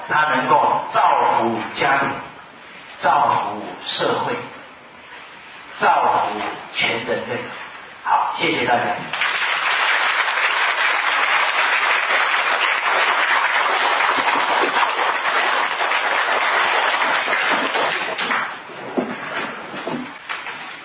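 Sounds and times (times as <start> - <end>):
speech: 0.1 - 2.3, 3.0 - 4.5, 5.8 - 9.2
large audience applause: 9.1 - 18.6.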